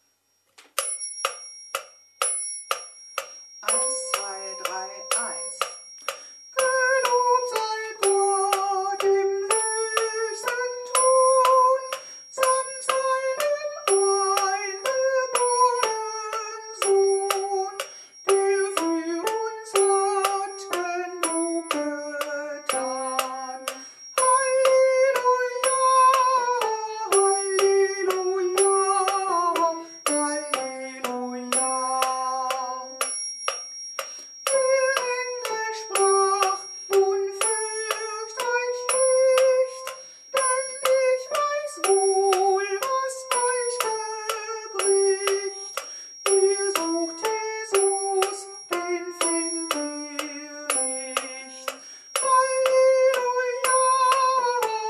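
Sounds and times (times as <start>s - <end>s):
soprano singing a hymn: 3.6s - 5.6s, 6.6s - 33.0s, 34.5s - 54.8s.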